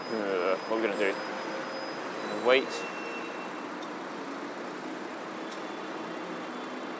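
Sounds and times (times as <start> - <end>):
queuing traffic at a junction: 0.0 - 6.9
speech: 0.7 - 1.5, 2.4 - 3.0.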